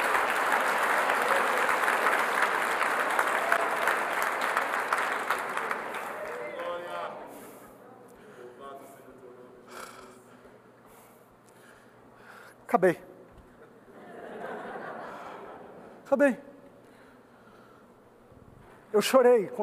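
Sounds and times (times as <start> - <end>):
crowd applause: 0.0 - 7.6
speech: 12.7 - 13.1, 16.1 - 16.4, 19.0 - 19.6
laughter: 13.6 - 16.0.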